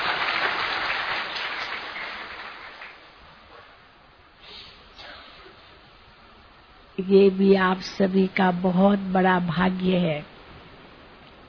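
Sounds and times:
audience clapping: 0.0 - 3.2
speech: 7.0 - 10.3.

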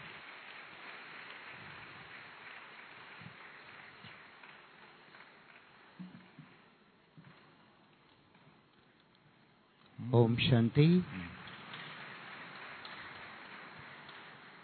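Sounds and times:
audience applause: 0.0 - 6.5, 10.2 - 14.6
speech: 10.1 - 11.3.

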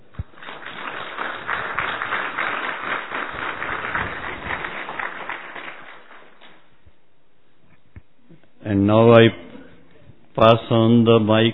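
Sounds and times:
crowd clapping in welcome: 0.0 - 6.7
speech: 8.8 - 9.4, 10.4 - 11.5.

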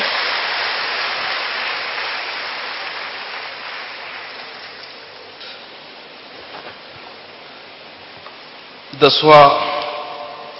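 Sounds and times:
audience clapping: 0.0 - 5.2
speech: 9.0 - 9.7.

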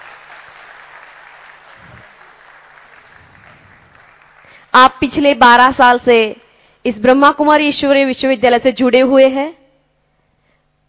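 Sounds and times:
audience applause welcoming a speaker at a Brahma Kumaris spiritual gathering: 0.0 - 4.7
speech: 4.7 - 9.6.

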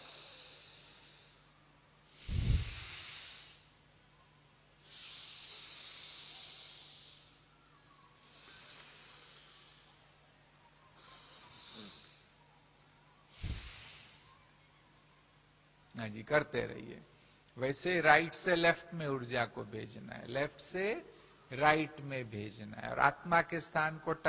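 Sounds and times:
deep breathing during a yoga pranayama exercise: 0.0 - 3.8, 4.8 - 7.6, 8.2 - 10.2, 11.0 - 12.4, 13.3 - 14.3
speech: 16.0 - 24.2.

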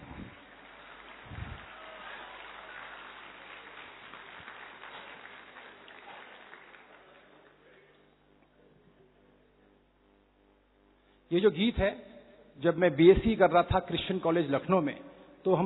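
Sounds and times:
loud audience applause: 0.0 - 7.9
speech: 11.3 - 15.6.

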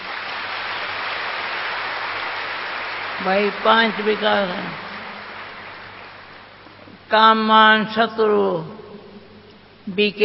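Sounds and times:
many hands clapping: 0.0 - 6.6
speech: 3.2 - 4.8, 7.1 - 8.8, 9.9 - 10.2.

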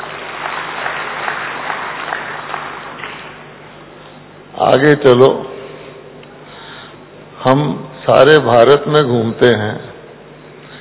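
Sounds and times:
audience clapping: 0.0 - 3.6
speech: 4.6 - 5.5, 7.5 - 9.9.

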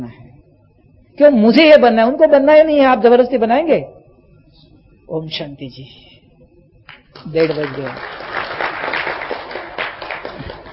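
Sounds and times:
speech: 1.2 - 4.0, 5.1 - 6.2, 7.2 - 8.4
audience clapping at a spiritual gathering: 6.9 - 10.7.

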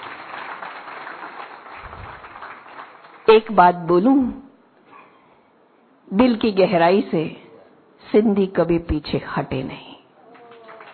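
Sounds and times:
audience at a Sindhi community gathering clapping: 0.0 - 3.5, 10.2 - 10.9
speech: 3.3 - 4.4, 6.1 - 7.4, 8.0 - 9.9.

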